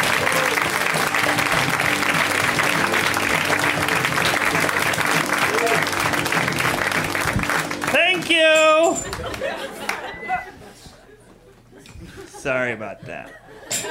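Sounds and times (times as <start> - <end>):
audience applause for a comedian coming on stage: 0.0 - 10.1
laughter: 8.8 - 13.8
speech: 12.5 - 13.4.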